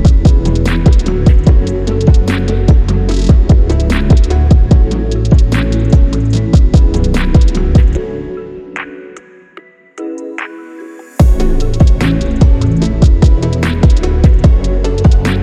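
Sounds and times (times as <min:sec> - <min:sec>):
phonk trap beat: 0:00.0 - 0:08.0, 0:11.2 - 0:15.4.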